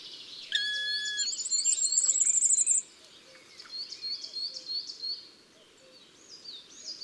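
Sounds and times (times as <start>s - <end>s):
firecrest singing in woods and forests: 0.6s - 2.8s.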